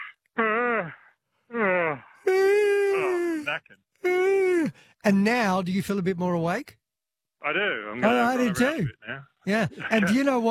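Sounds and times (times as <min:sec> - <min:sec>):
person yawning: 0:00.4 - 0:04.9
speech: 0:05.0 - 0:06.8, 0:07.5 - 0:10.5.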